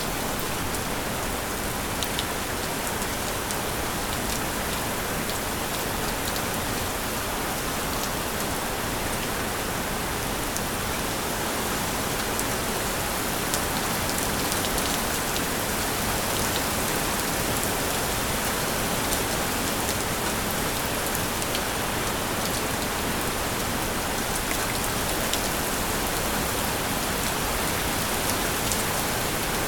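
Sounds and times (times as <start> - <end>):
rainfall: 0.0 - 29.6.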